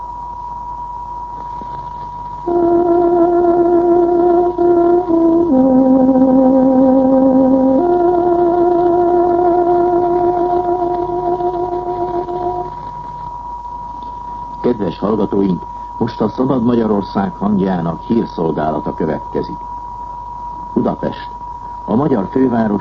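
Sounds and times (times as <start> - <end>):
speech: 2.4 - 2.7, 15.3 - 19.7, 20.7 - 22.7
tárogató playing a radio time signal: 2.5 - 12.8.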